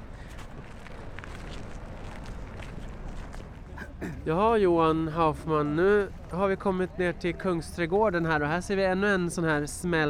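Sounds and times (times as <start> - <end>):
footsteps walking: 0.2 - 3.9
speech: 4.0 - 10.0.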